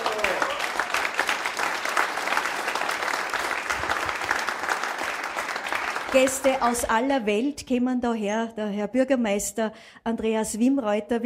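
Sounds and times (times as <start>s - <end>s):
applause from guests at a hotel event: 0.0s - 7.1s
speech: 6.1s - 11.2s.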